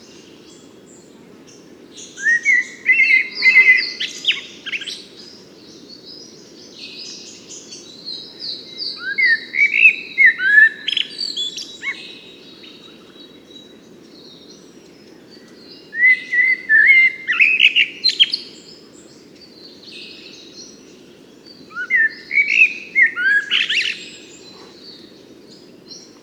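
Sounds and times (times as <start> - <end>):
Eurasian blackbird singing: 2.0 - 5.4, 8.1 - 13.7, 14.3 - 20.8, 21.4 - 26.2.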